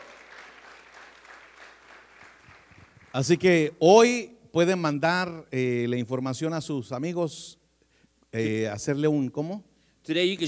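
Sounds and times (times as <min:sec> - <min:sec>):
audience applause: 0:00.0 - 0:03.3
speech: 0:03.1 - 0:07.6, 0:08.3 - 0:10.4.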